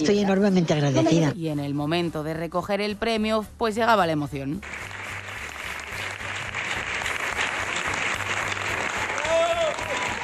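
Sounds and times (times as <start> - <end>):
speech: 0.0 - 5.0
audience ovation: 4.6 - 10.2.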